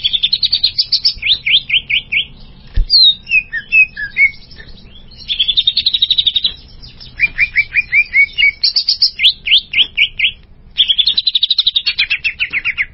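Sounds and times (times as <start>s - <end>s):
greater green leafbird whistled trilling song: 0.0s - 12.9s.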